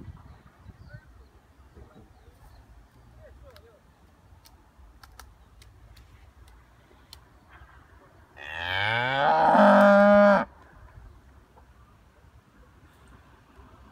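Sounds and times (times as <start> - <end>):
cow mooing: 8.4 - 10.5.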